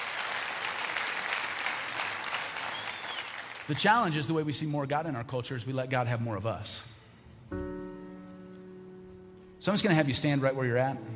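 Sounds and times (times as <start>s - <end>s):
audience applause: 0.0s - 3.8s
speech: 3.7s - 6.9s, 9.6s - 11.1s.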